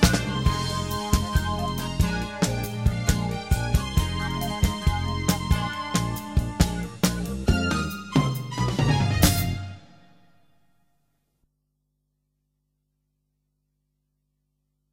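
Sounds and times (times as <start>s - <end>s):
fast modern music: 0.0s - 10.0s.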